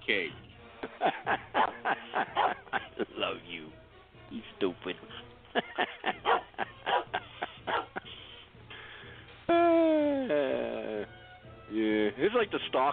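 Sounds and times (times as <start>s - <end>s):
speech: 0.1s - 0.4s, 1.0s - 6.7s, 12.2s - 12.9s
laughter: 0.8s - 3.4s, 5.0s - 8.3s, 9.6s - 11.1s
dog barking: 2.3s - 2.6s, 6.2s - 8.0s.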